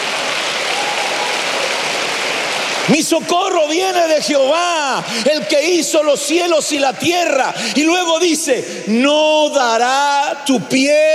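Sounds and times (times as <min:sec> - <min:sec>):
church congregation applause: 0:00.0 - 0:08.0
speech: 0:02.9 - 0:11.1.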